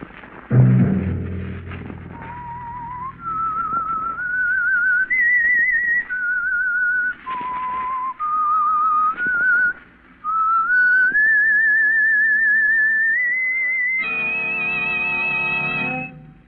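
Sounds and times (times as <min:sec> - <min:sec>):
dull thud: 0:00.5 - 0:04.5
low hum: 0:00.5 - 0:05.1
lone whistled melody: 0:02.1 - 0:16.3.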